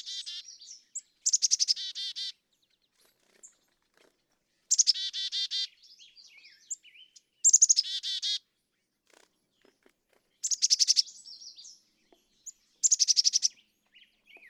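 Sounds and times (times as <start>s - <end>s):
Black-capped chickadee giving buzzy harsh dee notes and thin high chips: 0.0s - 2.4s, 3.0s - 8.5s, 9.1s - 14.4s.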